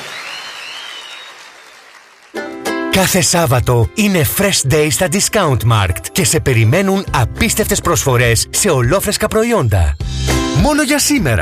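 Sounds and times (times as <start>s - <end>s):
audience applause for a performer: 0.0s - 2.6s
speech: 3.0s - 11.4s.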